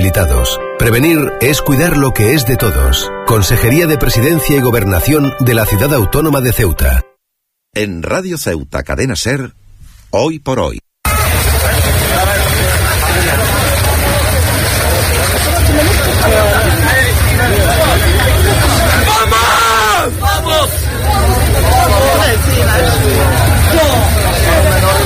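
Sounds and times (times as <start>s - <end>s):
speech: 0.1s - 7.1s, 7.7s - 10.8s
crowd chatter and shouts at the Tarajal border crossing in Ceuta: 11.1s - 25.0s.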